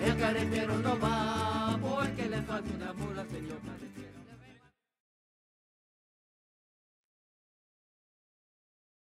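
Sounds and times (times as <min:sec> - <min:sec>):
mariachi music: 0:00.0 - 0:04.8.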